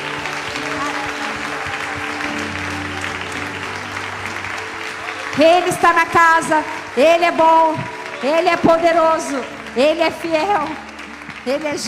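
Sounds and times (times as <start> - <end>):
audience applause: 0.0 - 11.8
speech: 5.4 - 11.8.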